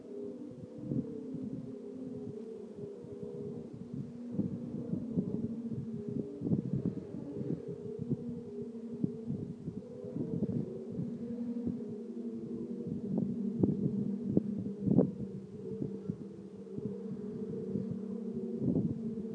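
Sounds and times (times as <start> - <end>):
Singing Ringing Tree wind sculpture humming: 0.0 - 19.3.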